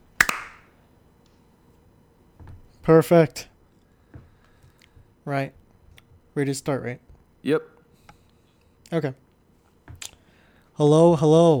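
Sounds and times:
hand claps for recording sync: 0:00.2 - 0:00.7
speech: 0:02.8 - 0:03.5, 0:05.3 - 0:05.6, 0:06.4 - 0:07.7, 0:08.9 - 0:09.2, 0:10.8 - 0:11.5.

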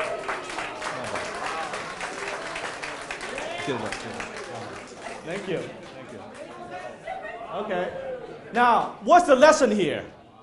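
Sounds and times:
warm applause from audience: 0:00.0 - 0:06.6
speech: 0:03.6 - 0:04.4, 0:05.2 - 0:05.9, 0:07.6 - 0:10.2.

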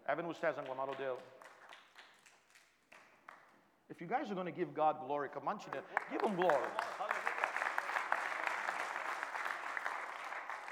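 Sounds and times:
speech: 0:00.1 - 0:01.6, 0:03.9 - 0:07.1
audience clapping: 0:00.6 - 0:03.6, 0:05.7 - 0:10.7.

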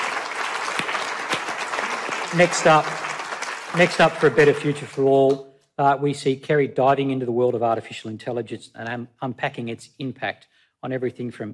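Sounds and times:
audience applause: 0:00.0 - 0:05.0
speech: 0:02.3 - 0:03.0, 0:03.7 - 0:11.5.

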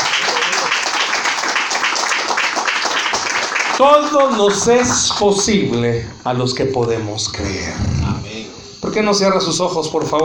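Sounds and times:
audience applauding: 0:00.0 - 0:05.5
speech: 0:03.8 - 0:08.0, 0:08.8 - 0:10.2.

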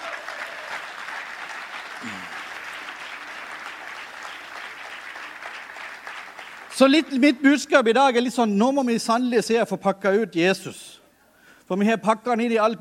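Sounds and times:
audience applause: 0:00.0 - 0:07.3
speech: 0:02.0 - 0:02.4, 0:06.8 - 0:10.8, 0:11.7 - 0:12.7
low vocal sound: 0:02.0 - 0:02.5.

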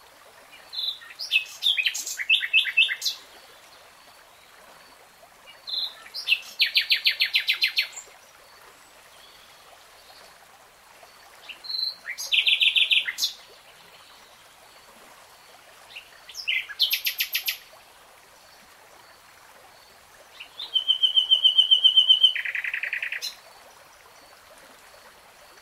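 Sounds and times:
nightingale song: 0:00.5 - 0:03.3, 0:05.5 - 0:08.1, 0:11.4 - 0:14.4, 0:15.9 - 0:17.7, 0:20.3 - 0:23.4.

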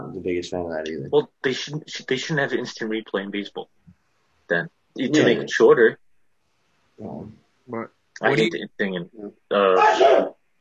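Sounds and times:
speech: 0:00.1 - 0:03.7, 0:04.5 - 0:06.0, 0:07.0 - 0:10.4
sneeze: 0:09.8 - 0:10.3.

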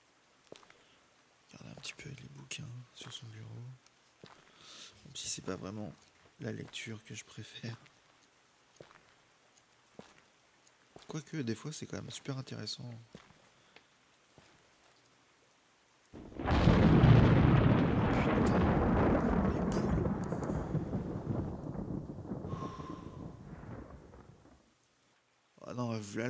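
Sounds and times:
speech: 0:01.8 - 0:03.9, 0:04.7 - 0:07.9, 0:11.1 - 0:13.2
thunderclap: 0:16.2 - 0:24.7.

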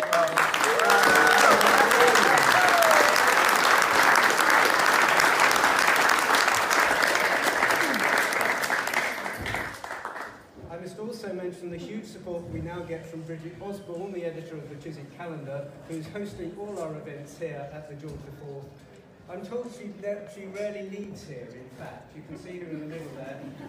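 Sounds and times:
audience round of applause: 0:00.0 - 0:10.4
speech: 0:14.8 - 0:23.6.

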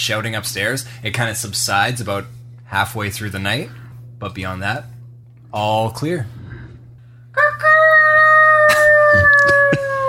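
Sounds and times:
speech: 0:00.0 - 0:06.4
low steady hum: 0:00.0 - 0:10.0
rooster crowing: 0:07.4 - 0:10.0.

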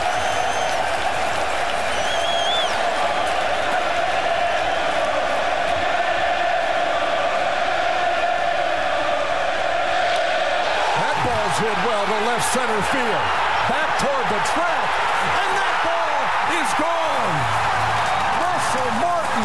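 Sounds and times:
shrill whistles: 0:00.0 - 0:01.0, 0:01.8 - 0:02.9
packed ballpark crowd cheering and jeering: 0:00.0 - 0:19.4
speech: 0:11.8 - 0:15.4, 0:16.5 - 0:17.6, 0:18.8 - 0:19.4.

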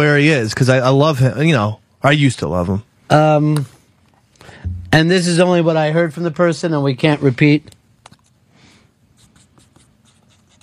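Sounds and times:
speech: 0:00.0 - 0:03.8, 0:04.9 - 0:07.8
pen scratching across paper: 0:09.2 - 0:10.6.

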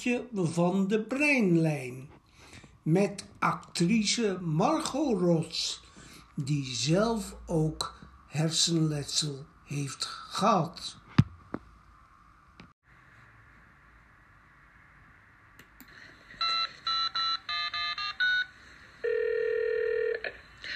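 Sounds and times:
speech: 0:00.0 - 0:02.2, 0:02.8 - 0:05.8, 0:06.4 - 0:11.0
dual-tone beeps of a telephone number being dialed: 0:16.4 - 0:18.5
pulsing steady tone of a phone line ringing: 0:16.4 - 0:20.4.

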